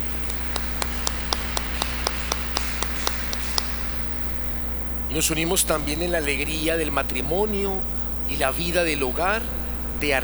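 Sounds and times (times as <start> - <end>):
audience applause: 0.0 - 4.4
speech: 5.2 - 10.2.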